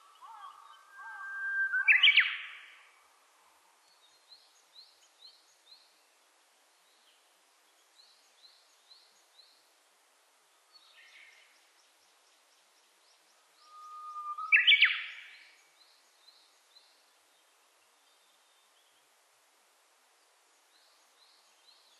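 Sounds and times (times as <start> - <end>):
Japanese bush warbler song: 0.0 - 3.0, 3.6 - 21.9.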